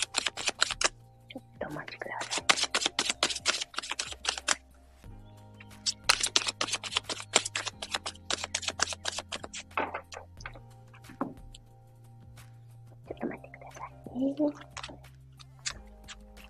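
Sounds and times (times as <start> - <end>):
oracle cards being shuffled and drawn from a deck: 0.0 - 1.0, 2.0 - 4.6, 5.6 - 11.6, 14.6 - 16.4
speech: 14.3 - 14.7.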